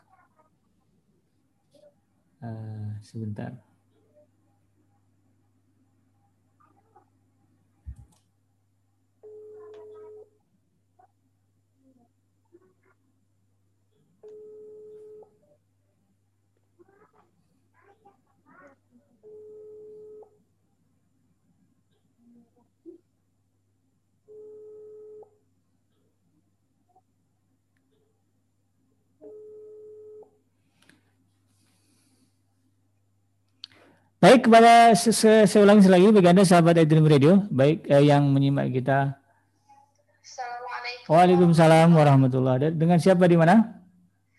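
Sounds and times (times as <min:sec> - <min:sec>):
speech: 0:02.4 - 0:03.7, 0:34.2 - 0:39.2, 0:41.1 - 0:43.8
telephone ringing tone: 0:14.2 - 0:15.4, 0:19.2 - 0:20.4, 0:24.3 - 0:25.4, 0:29.2 - 0:30.4.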